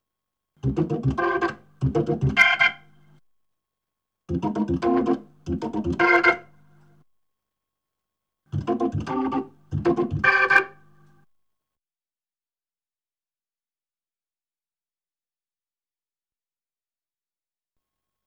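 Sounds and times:
Hammond B3 organ: 0.6s - 3.0s, 4.3s - 6.8s, 8.6s - 10.9s.

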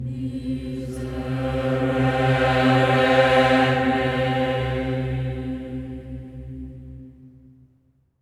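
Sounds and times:
voices singing a sacred chant: 0.0s - 6.7s.

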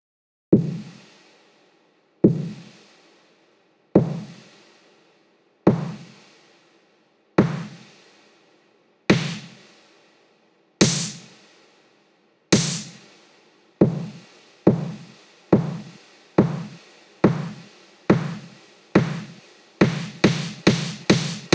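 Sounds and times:
breakbeat drums with snare: 0.6s - 1.3s, 2.2s - 3.0s, 4.0s - 4.6s, 5.7s - 6.5s, 7.4s - 8.1s, 9.1s - 9.9s, 10.8s - 11.6s, 12.5s - 21.5s.

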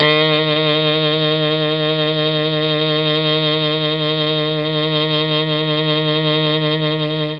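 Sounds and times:
Mellotron MKII saxophone note D sharp: 0.0s - 7.3s.

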